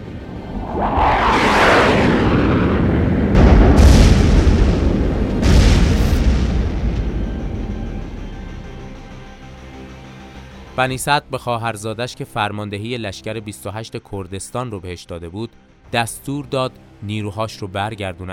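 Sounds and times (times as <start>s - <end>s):
aerial bombing explosions: 0.2s - 9.0s
speech: 0.8s - 1.0s, 10.8s - 18.3s.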